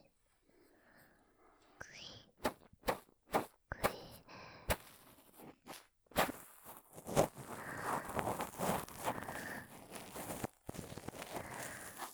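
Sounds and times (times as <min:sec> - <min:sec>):
ear cleaning ASMR: 0:02.4 - 0:12.1.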